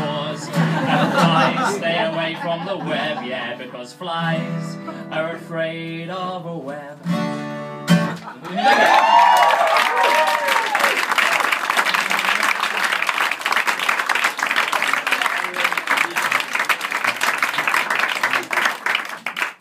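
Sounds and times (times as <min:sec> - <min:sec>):
laughter: 0:00.4 - 0:03.8, 0:08.0 - 0:09.4, 0:10.0 - 0:12.8
speech: 0:01.1 - 0:07.4, 0:08.3 - 0:09.2
crowd applause: 0:08.1 - 0:19.6
person cheering: 0:08.4 - 0:11.5.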